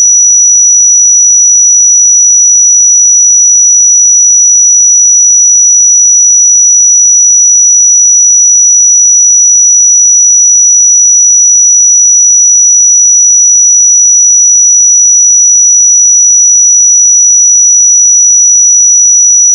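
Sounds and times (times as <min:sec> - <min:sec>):
pure sine tone at 5876 Hz: 0:00.0 - 0:19.5.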